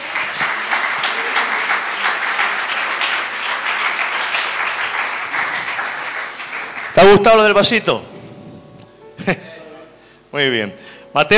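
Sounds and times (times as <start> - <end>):
audience applause: 0.0 - 7.6
speech: 7.0 - 8.1, 10.3 - 11.3.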